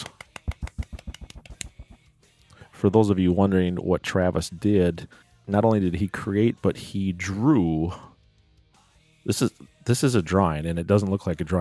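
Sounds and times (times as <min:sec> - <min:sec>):
soft polite golf clap: 0:00.0 - 0:02.0
speech: 0:02.8 - 0:08.1, 0:09.2 - 0:11.5.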